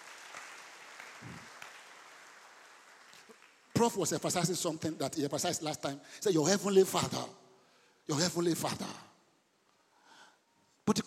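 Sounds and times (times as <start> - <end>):
audience clapping hands: 0.0 - 4.0
speech: 3.8 - 7.4, 8.1 - 9.1.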